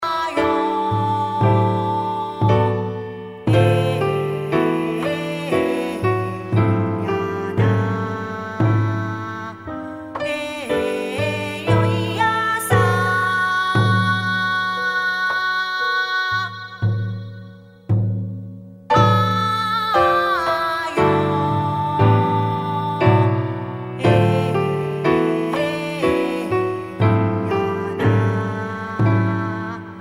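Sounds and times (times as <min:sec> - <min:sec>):
oriental mood music: 0:00.0 - 0:29.9.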